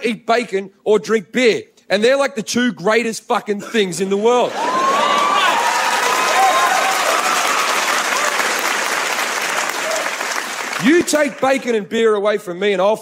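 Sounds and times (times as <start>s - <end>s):
speech: 0.0s - 4.8s, 10.8s - 13.0s
audience applause: 4.5s - 11.4s.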